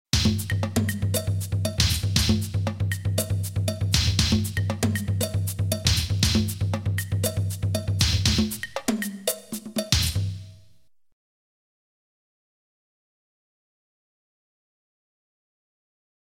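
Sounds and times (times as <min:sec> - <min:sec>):
funk percussion: 0:00.1 - 0:10.8.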